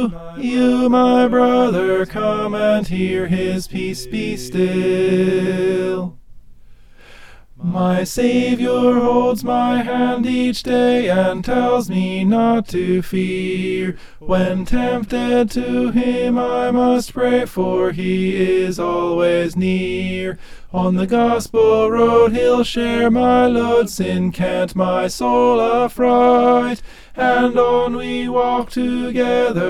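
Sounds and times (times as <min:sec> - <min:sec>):
tenor singing: 0:00.0 - 0:06.2, 0:07.6 - 0:29.6.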